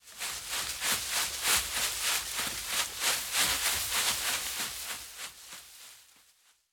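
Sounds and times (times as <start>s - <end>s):
footsteps running through undergrowth: 0.1s - 6.4s.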